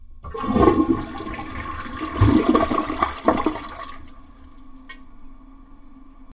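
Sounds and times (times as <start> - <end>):
toilet flushing: 0.2 - 5.0.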